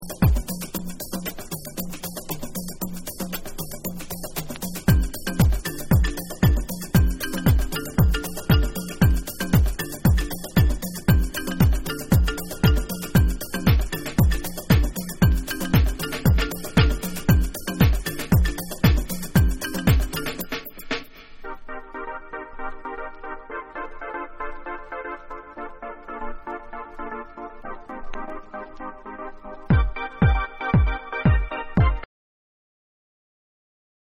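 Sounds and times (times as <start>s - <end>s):
bonus beats: 0.0s - 21.3s, 29.7s - 32.0s.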